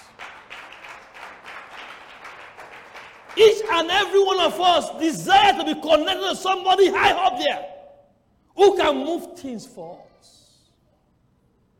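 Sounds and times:
audience clapping: 0:00.0 - 0:04.6
speech: 0:03.4 - 0:07.7, 0:08.6 - 0:10.4.

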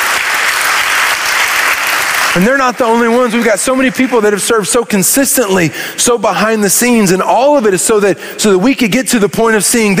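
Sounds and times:
audience clapping: 0:00.0 - 0:04.8
speech: 0:02.3 - 0:09.9.

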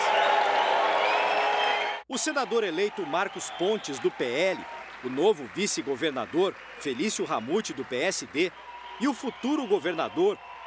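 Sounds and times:
crowd applause: 0:00.0 - 0:10.6
speech: 0:02.1 - 0:10.6.

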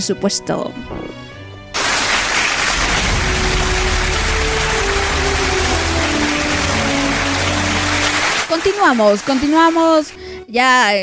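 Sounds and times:
speech: 0:00.0 - 0:01.3, 0:08.8 - 0:11.0
applause sound effect: 0:01.7 - 0:10.2.

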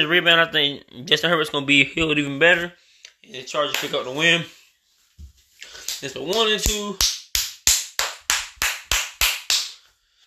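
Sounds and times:
speech: 0:00.0 - 0:04.6, 0:06.0 - 0:07.2
young girl clapping hands: 0:03.7 - 0:04.0, 0:05.8 - 0:09.8.

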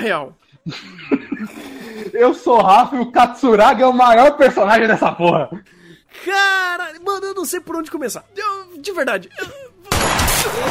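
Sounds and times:
speech: 0:00.0 - 0:10.6
laughter: 0:00.6 - 0:03.2, 0:09.3 - 0:09.9
gunshot from leaked anime audio: 0:09.9 - 0:10.6.

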